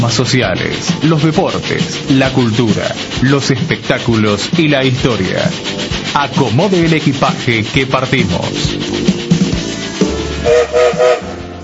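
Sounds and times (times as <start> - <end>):
speech: 0.0 - 9.1
train rumbling and clattering with rhythmic low thumps: 0.0 - 9.7
train whistle short steady mid-pitched blasts: 10.4 - 11.4.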